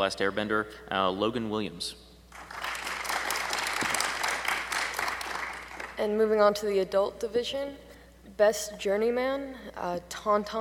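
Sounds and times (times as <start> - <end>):
speech: 0.0 - 2.1, 6.0 - 10.5
applause: 2.3 - 6.0.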